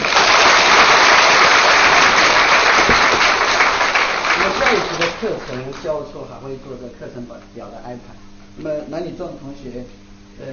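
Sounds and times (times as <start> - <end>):
audience applause: 0.0 - 6.1
speech: 5.6 - 10.5.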